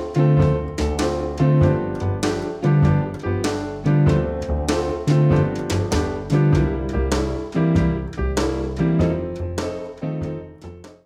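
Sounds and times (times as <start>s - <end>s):
traditional jazz music: 0.0s - 11.0s.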